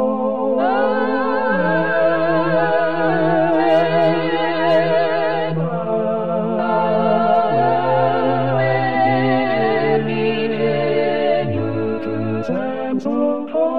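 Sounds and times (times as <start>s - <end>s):
vocal ensemble singing: 0.0s - 13.7s.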